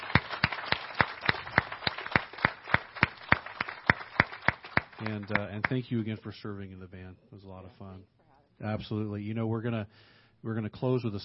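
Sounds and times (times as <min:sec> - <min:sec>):
audience applause: 0:00.0 - 0:05.8
speech: 0:05.0 - 0:11.2.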